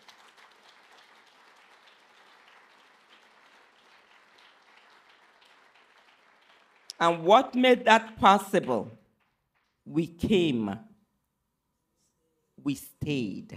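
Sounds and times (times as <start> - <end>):
audience clapping: 0.0 - 9.9
speech: 7.0 - 9.0, 9.9 - 10.9, 12.6 - 13.5.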